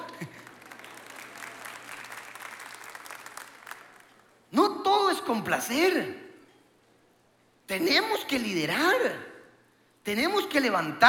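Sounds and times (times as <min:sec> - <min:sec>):
women applauding: 0:00.0 - 0:04.3
speech: 0:05.3 - 0:06.2, 0:07.7 - 0:09.3, 0:10.0 - 0:11.0.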